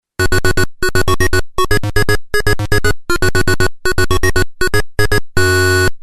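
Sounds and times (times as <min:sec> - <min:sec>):
FM-7 synthesizer: 0:00.2 - 0:06.0.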